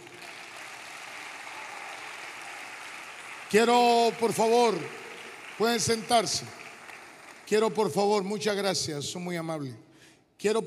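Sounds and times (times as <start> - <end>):
audience applause: 0.0 - 7.7
speech: 3.5 - 5.0, 5.6 - 6.6, 7.5 - 9.8, 10.4 - 10.6.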